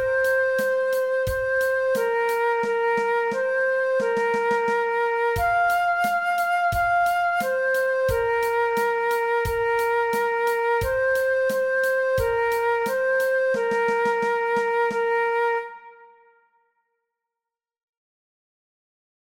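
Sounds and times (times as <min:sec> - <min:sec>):
transverse flute playing along with a play-along track: 0:00.0 - 0:16.6.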